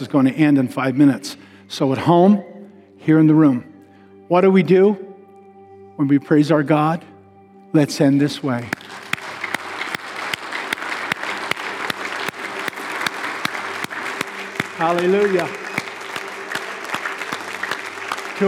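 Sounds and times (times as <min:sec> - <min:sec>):
speech: 0:00.0 - 0:03.7, 0:04.3 - 0:05.1, 0:06.0 - 0:07.1, 0:07.7 - 0:08.9, 0:14.8 - 0:15.6
audience applauding: 0:08.7 - 0:18.4.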